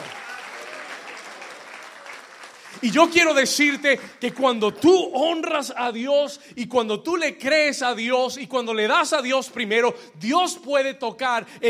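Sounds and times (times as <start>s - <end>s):
loud sustained audience applause: 0.0s - 4.5s
speech: 2.8s - 11.6s.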